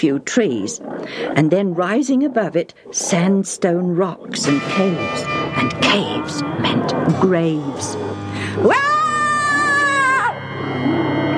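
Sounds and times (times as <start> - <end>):
speech: 0.0 - 8.9
hideous howl echoing from caves: 8.6 - 11.3.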